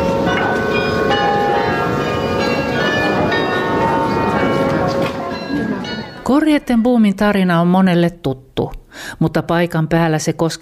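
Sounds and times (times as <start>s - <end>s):
Grote Kerk church bells ringing: 0.0s - 7.2s
speech: 6.3s - 10.6s.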